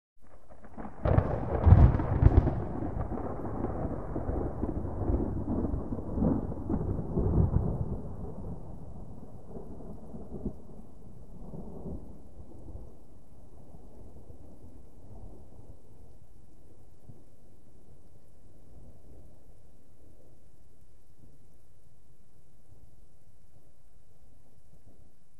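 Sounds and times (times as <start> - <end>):
rippling thunder: 0.3 - 13.0.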